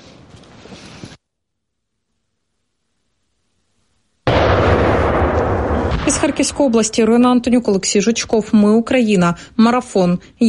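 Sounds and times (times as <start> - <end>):
explosive detonating against a wooden log: 4.3 - 7.5
low rumbling: 4.3 - 7.5
speech: 6.1 - 10.4.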